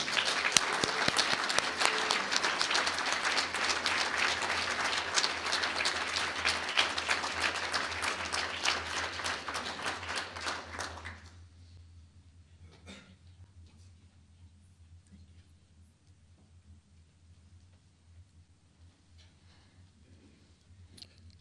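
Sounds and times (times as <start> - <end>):
round of applause: 0.0 - 11.8.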